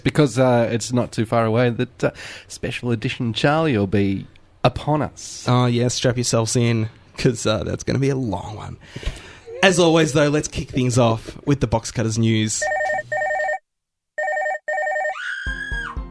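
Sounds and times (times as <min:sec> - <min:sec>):
speech: 0:00.0 - 0:13.2
person screaming sample in a news theme: 0:15.1 - 0:16.0.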